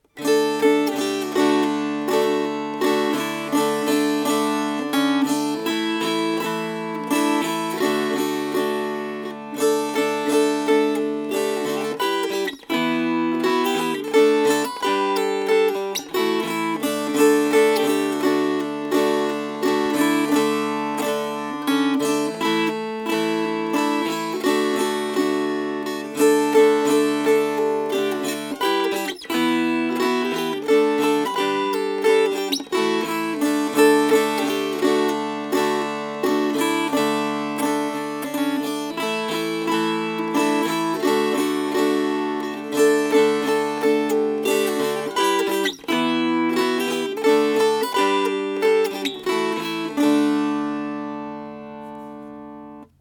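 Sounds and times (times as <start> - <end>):
strummed strings: 0.0 - 53.0.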